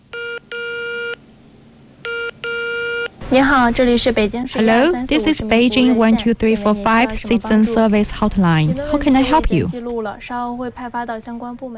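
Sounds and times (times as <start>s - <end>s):
telephone keypad touch-tone dialing beeps: 2.1s - 3.1s
speech: 3.3s - 11.7s.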